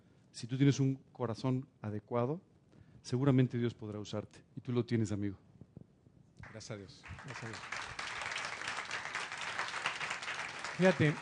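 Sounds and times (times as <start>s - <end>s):
speech: 0.4s - 5.4s, 6.5s - 7.8s, 10.8s - 11.1s
audience applause: 7.0s - 11.1s.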